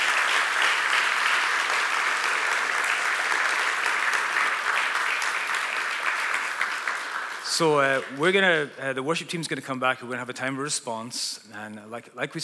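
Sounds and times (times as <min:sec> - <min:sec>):
audience applause: 0:00.0 - 0:08.7
speech: 0:07.6 - 0:12.4.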